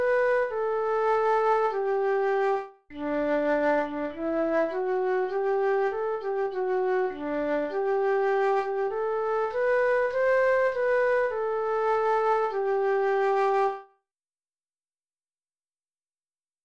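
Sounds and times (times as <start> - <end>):
flutes playing: 0.0 - 13.9.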